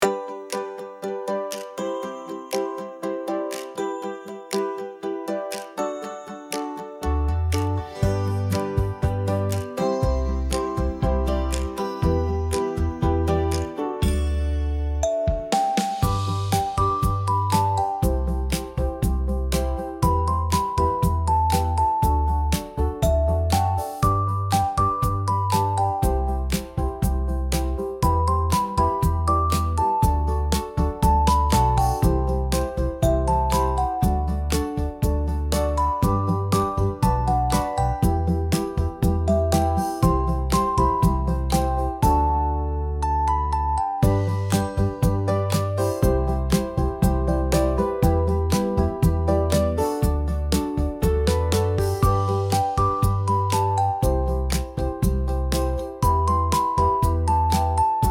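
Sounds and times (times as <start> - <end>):
playful cheerful music: 0.0 - 58.1.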